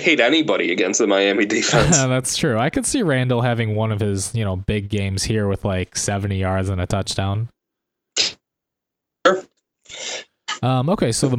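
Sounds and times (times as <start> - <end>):
speech: 0.0 - 7.5, 9.2 - 11.3
harsh breathy coughs: 1.6 - 2.1, 8.2 - 8.4.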